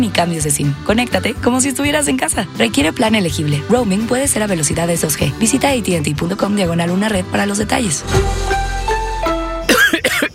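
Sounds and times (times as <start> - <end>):
speech: 0.0 - 8.8
person with a flu-like cough coughing harshly: 9.7 - 10.3.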